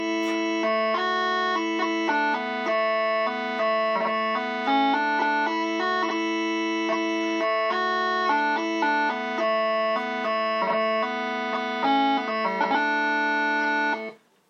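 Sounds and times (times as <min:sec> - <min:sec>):
bagpipe tune: 0:00.0 - 0:14.2.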